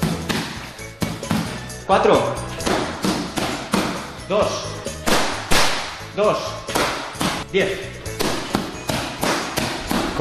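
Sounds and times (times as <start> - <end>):
punches landing on boxing gloves: 0.0 - 1.6, 2.6 - 4.1, 5.0 - 6.0, 6.7 - 7.4, 8.1 - 10.1
speech: 1.9 - 2.5, 4.3 - 4.8, 6.2 - 6.6, 7.5 - 8.0.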